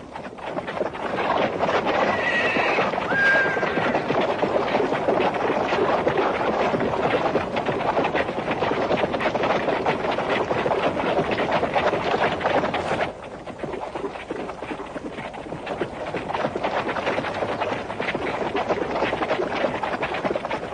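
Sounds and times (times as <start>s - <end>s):
hooves clip-clopping: 0.0s - 20.7s
rushing wind noise: 0.4s - 13.2s
horses neighing: 1.9s - 4.3s.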